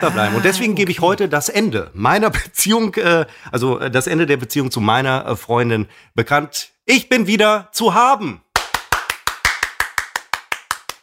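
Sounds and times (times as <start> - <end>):
laughter: 0.0 - 1.3
speech: 0.0 - 8.4
applause: 8.5 - 11.0.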